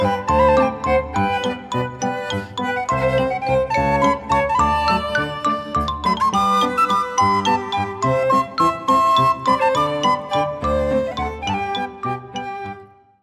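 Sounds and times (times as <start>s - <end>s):
vibraphone: 0.0s - 12.8s
accordion: 0.0s - 12.9s
piano: 0.0s - 12.9s
tin whistle playing Irish dance music: 0.0s - 13.0s
violin playing Irish dance music: 0.0s - 13.1s.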